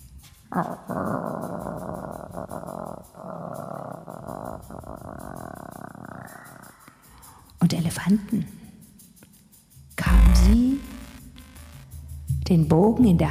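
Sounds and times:
speech: 0:00.5 - 0:03.6, 0:07.7 - 0:08.6, 0:12.5 - 0:13.3
dogs howling and growling: 0:00.6 - 0:06.7.

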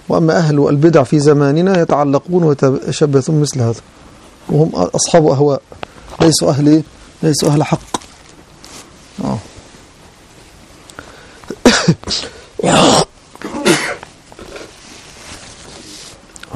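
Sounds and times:
speech: 0:00.1 - 0:08.1
person sneezing: 0:11.5 - 0:14.7.

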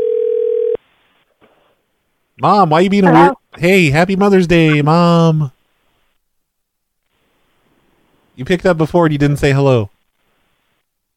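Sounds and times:
telephone dial tone after hang-up: 0:00.0 - 0:00.8
speech: 0:02.4 - 0:05.6, 0:08.4 - 0:09.9.

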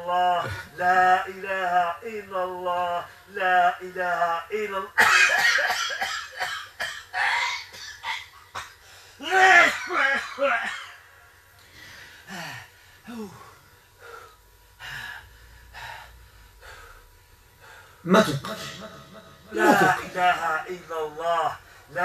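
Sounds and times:
speech: 0:00.1 - 0:07.4, 0:09.2 - 0:10.8, 0:13.1 - 0:13.4, 0:18.0 - 0:22.0
person coughing during a ruqya recitation: 0:05.0 - 0:08.8, 0:09.5 - 0:11.1, 0:18.5 - 0:20.6
heavy breathing: 0:08.8 - 0:09.2, 0:11.6 - 0:20.3
strained voiced gasps during a ruqya recitation: 0:11.6 - 0:18.0.

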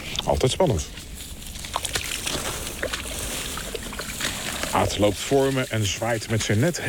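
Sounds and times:
speech: 0:00.2 - 0:01.1, 0:04.8 - 0:06.8
water sloshing and splashing as someone wades into marsh water: 0:01.0 - 0:06.8.

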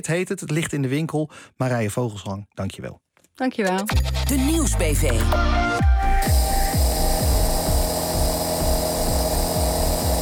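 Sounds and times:
speech: 0:00.0 - 0:06.4
high hiss: 0:06.2 - 0:10.1
hospital ventilator breathing machine in Mannheim Germany humming and thumping: 0:06.2 - 0:10.1.

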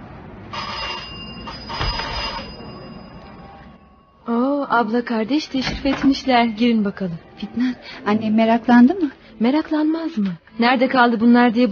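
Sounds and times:
doorbell ringing: 0:00.5 - 0:04.4
speech: 0:04.7 - 0:11.6.

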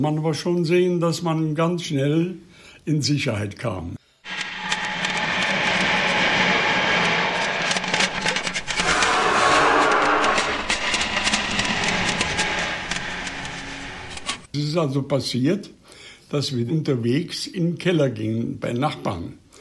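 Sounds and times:
speech: 0:00.0 - 0:04.0, 0:14.8 - 0:19.4
droning engines of aircraft overhead: 0:04.3 - 0:14.5.

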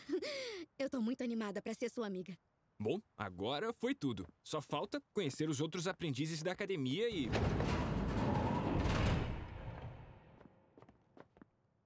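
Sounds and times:
speech: 0:00.2 - 0:07.9
loud burst of noise: 0:07.2 - 0:10.3.

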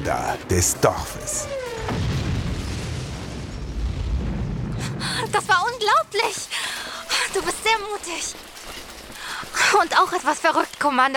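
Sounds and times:
speech: 0:00.1 - 0:02.2, 0:04.8 - 0:06.6, 0:07.3 - 0:08.9, 0:09.7 - 0:11.1
explosion of fighter jets crashing in fireball: 0:01.1 - 0:05.6.

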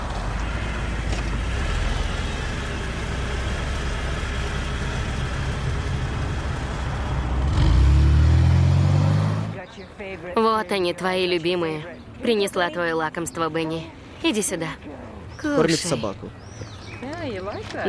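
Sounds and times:
car driving: 0:00.0 - 0:09.8
speech: 0:10.3 - 0:17.8.

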